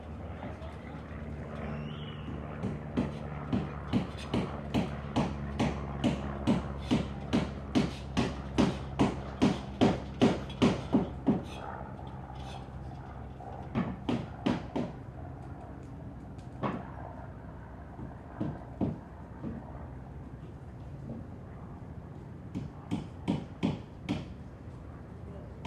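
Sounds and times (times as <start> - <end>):
sounds outside the window: 0.0 - 25.6
hammer knocking indoors: 3.0 - 11.6, 13.7 - 14.9.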